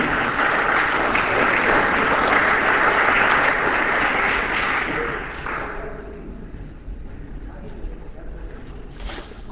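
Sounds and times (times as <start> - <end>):
audience applause: 0.0 - 6.4.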